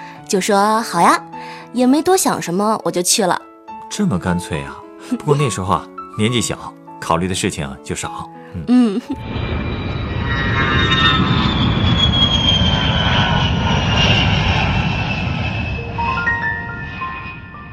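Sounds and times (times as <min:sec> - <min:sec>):
speech: 0:00.3 - 0:09.6
airplane taking off: 0:09.2 - 0:17.7
high whining engine tones: 0:09.2 - 0:17.7.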